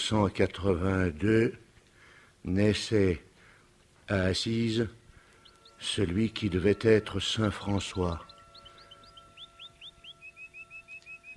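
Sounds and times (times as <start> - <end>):
speech: 0.1 - 1.6, 2.4 - 3.3, 4.1 - 5.0, 5.8 - 8.3
songbirds singing: 4.1 - 11.3.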